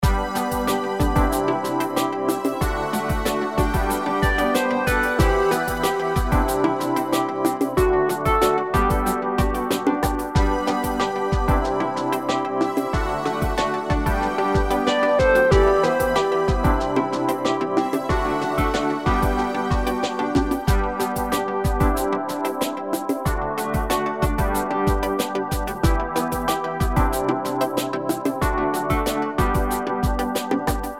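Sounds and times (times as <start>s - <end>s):
simple positive music loop: 0.0s - 30.9s.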